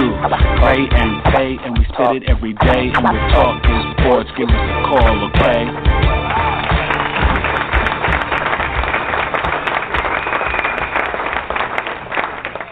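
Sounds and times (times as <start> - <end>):
speech: 0.2 - 5.9
crowd clapping: 5.0 - 12.7.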